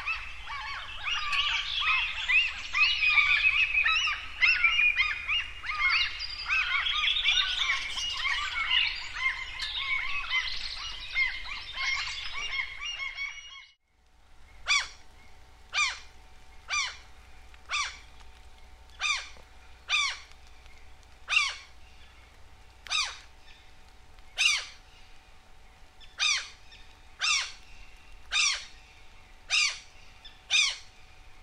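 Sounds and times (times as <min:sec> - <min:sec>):
common gull calling shrilly: 0:00.0 - 0:13.7, 0:14.6 - 0:15.0, 0:15.7 - 0:18.1, 0:19.0 - 0:20.3, 0:21.3 - 0:21.7, 0:22.9 - 0:23.3, 0:24.4 - 0:24.8, 0:26.2 - 0:26.6, 0:27.2 - 0:27.6, 0:28.3 - 0:28.8, 0:29.5 - 0:29.8, 0:30.5 - 0:30.9.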